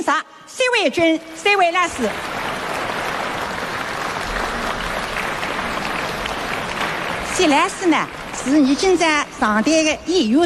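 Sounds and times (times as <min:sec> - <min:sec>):
speech: 0:00.0 - 0:02.4, 0:07.4 - 0:10.4
audience applause: 0:01.2 - 0:09.6.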